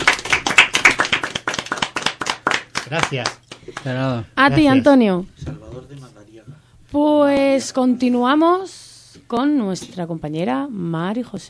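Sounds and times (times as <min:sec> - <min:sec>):
audience clapping for a poet: 0:00.0 - 0:03.9
speech: 0:02.9 - 0:11.4.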